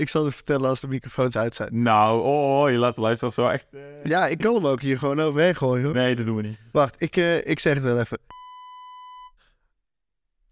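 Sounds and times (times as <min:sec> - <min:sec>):
speech: 0:00.0 - 0:08.4
censor beep: 0:08.3 - 0:09.4.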